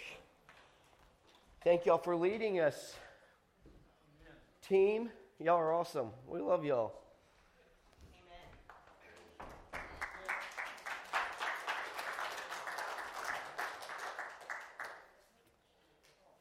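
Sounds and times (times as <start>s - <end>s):
speech: 1.6s - 3.1s, 4.7s - 7.0s
nervous audience clapping: 8.6s - 15.3s.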